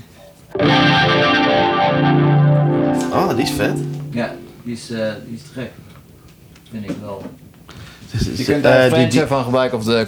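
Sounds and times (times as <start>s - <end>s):
electric guitar through Electric Mistress flanger pedal: 0.6s - 5.4s
speech: 3.4s - 6.0s, 6.7s - 7.4s, 8.1s - 10.0s.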